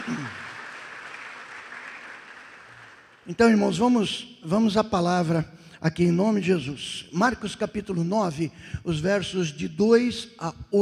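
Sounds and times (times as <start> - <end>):
audience applause: 0.0 - 3.3
speech: 3.3 - 10.8.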